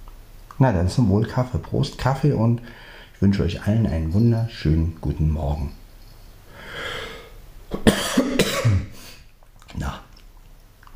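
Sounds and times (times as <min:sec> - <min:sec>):
speech: 0:00.6 - 0:05.8
soft breathy hiss: 0:02.5 - 0:03.2, 0:06.4 - 0:09.3
short harsh throaty coughs: 0:07.7 - 0:09.0.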